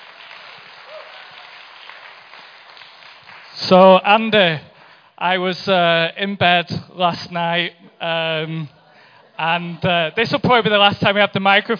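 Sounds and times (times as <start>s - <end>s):
audience applause: 0.0s - 3.6s
speech: 3.6s - 8.8s, 9.4s - 11.7s.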